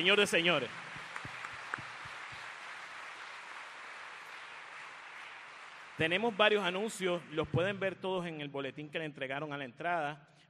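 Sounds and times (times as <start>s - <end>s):
speech: 0.0s - 0.8s, 6.0s - 10.3s
crowd applauding: 0.0s - 8.0s.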